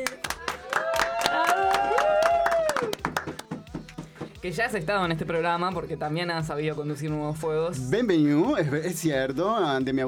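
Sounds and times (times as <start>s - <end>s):
applause: 0.0s - 3.6s
speech: 4.4s - 10.0s.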